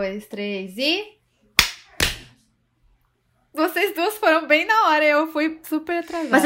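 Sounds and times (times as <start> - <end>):
speech: 0.0 - 1.2, 3.6 - 6.4
hosts clapping hands together on cue: 1.6 - 2.3.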